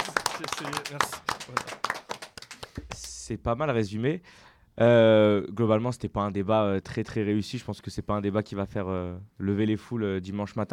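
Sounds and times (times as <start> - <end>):
clapping: 0.0 - 3.2
speech: 0.5 - 1.8, 3.3 - 10.7.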